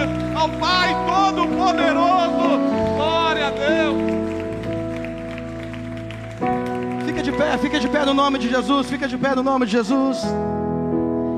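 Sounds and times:
audience applause: 0:00.0 - 0:09.1
speech: 0:00.4 - 0:02.7, 0:07.4 - 0:10.6.

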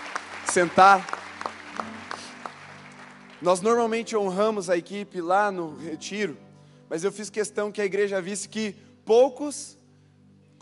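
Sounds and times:
audience applause: 0:00.0 - 0:03.8
speech: 0:00.5 - 0:01.2, 0:03.4 - 0:09.8.

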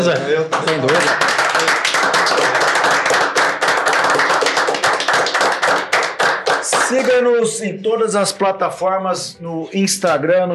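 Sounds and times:
speech: 0:00.0 - 0:02.5, 0:06.9 - 0:10.5
clapping applause: 0:00.0 - 0:07.4.

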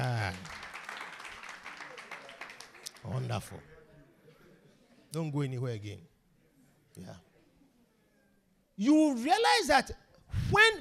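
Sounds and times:
audience clapping: 0:00.0 - 0:03.6
speech: 0:03.2 - 0:03.8, 0:05.1 - 0:06.1, 0:07.0 - 0:07.3, 0:08.8 - 0:10.7.

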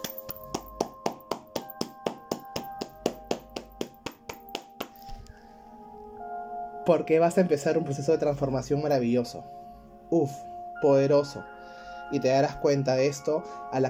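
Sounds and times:
person clapping hands: 0:00.0 - 0:05.1
speech: 0:06.9 - 0:11.5, 0:12.1 - 0:13.8.

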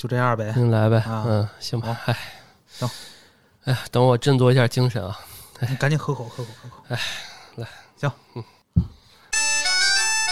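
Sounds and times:
speech: 0:00.0 - 0:08.9
phone ringtone: 0:09.3 - 0:10.2.

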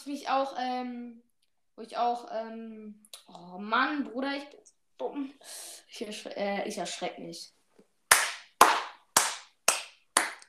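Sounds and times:
speech: 0:00.0 - 0:07.6
hand clapping: 0:08.1 - 0:10.4.

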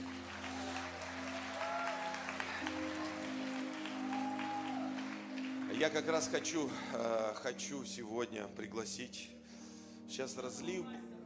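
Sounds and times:
audience applause: 0:00.0 - 0:07.2
rising vocal whoops: 0:00.4 - 0:05.2
speech: 0:05.8 - 0:09.4, 0:10.1 - 0:11.1.

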